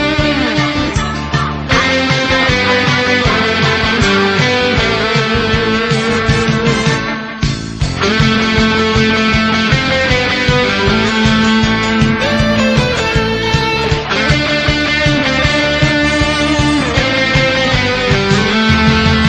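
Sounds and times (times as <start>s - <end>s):
guitar music: 0.0s - 19.2s.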